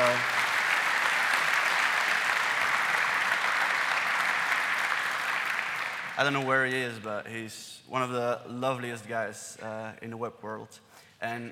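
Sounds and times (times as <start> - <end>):
audience applause: 0.0 - 6.7
speech: 6.2 - 11.5.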